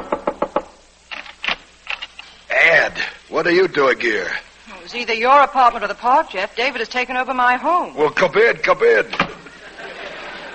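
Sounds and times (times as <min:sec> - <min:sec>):
frantic knocking on an apartment door: 0:00.0 - 0:00.8
speech: 0:02.9 - 0:09.3
laughter: 0:09.3 - 0:10.5.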